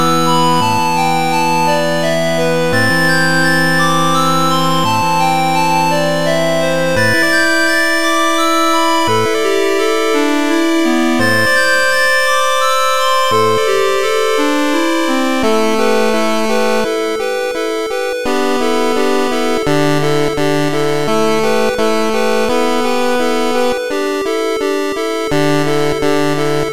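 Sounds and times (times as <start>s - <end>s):
mysterious 8-bit music loop: 0.0s - 26.7s.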